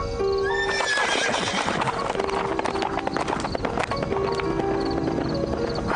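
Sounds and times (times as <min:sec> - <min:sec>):
horse neighing: 0:00.5 - 0:02.6
horse with rider galloping through an open gate: 0:00.7 - 0:05.9.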